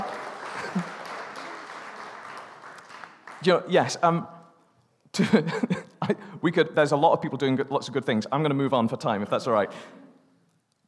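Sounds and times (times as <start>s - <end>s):
audience applause: 0.0s - 3.7s
laughter: 0.4s - 1.2s, 5.2s - 6.2s
speech: 3.4s - 4.4s, 5.2s - 10.0s.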